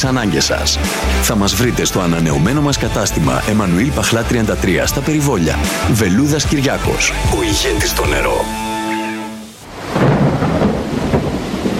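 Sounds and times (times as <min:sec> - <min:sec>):
speech: 0:00.0 - 0:08.7
thunderstorm with heavy rain: 0:09.6 - 0:11.7.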